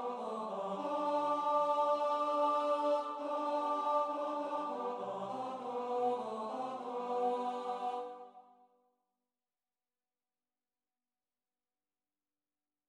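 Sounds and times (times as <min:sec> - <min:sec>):
tenor singing: 0:00.0 - 0:08.2.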